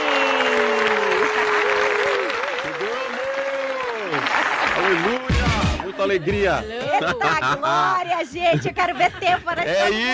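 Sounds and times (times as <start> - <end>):
warm round of applause: 0.0 - 6.0
laughter: 4.2 - 10.1
speech: 6.0 - 10.1.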